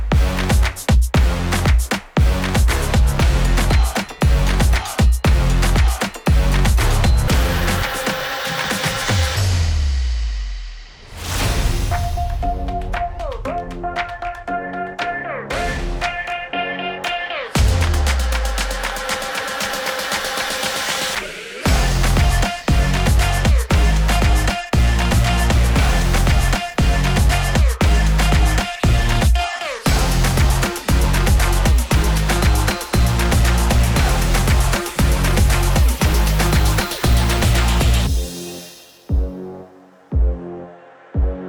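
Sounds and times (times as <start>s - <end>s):
loud pounding dance music at night: 0.0s - 41.4s.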